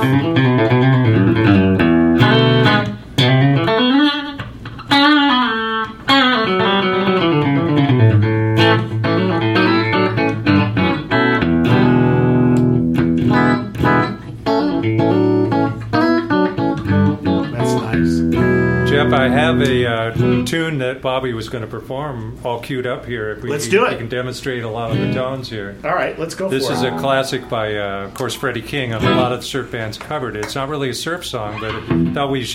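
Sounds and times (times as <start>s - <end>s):
speech: 0.0s - 1.8s, 21.0s - 32.5s
electric guitar played through in-between pickup: 0.0s - 20.5s, 26.5s - 28.2s, 28.9s - 29.4s.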